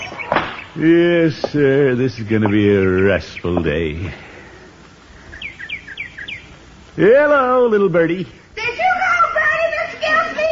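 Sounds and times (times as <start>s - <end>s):
bird chirping: 0.0s - 4.5s, 5.1s - 6.8s
faint hiss: 0.0s - 10.5s
speech: 0.8s - 4.4s, 7.0s - 8.4s.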